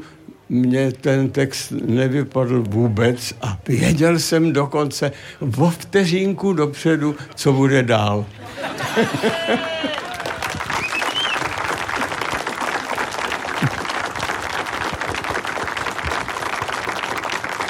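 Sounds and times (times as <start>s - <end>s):
speech: 0.0s - 9.9s
cheering or laughter: 8.4s - 11.3s
audience applause: 8.5s - 17.6s.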